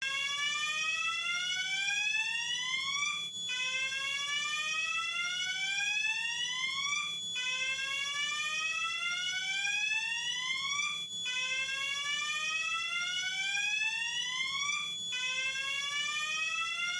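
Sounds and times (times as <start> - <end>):
fire alarm: 0.0 - 16.9.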